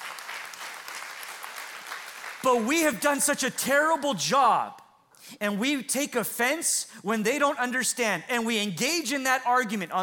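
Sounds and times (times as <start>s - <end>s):
crowd clapping in a large room: 0.0s - 3.0s
speech: 2.4s - 10.0s.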